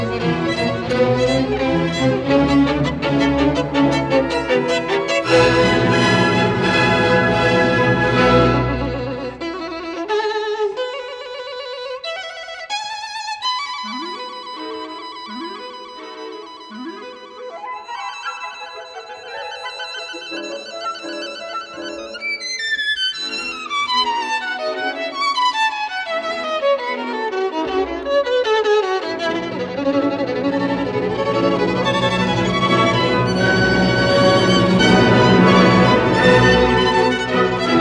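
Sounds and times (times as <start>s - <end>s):
violin and orchestra concerto: 0.0s - 12.2s, 19.8s - 37.7s.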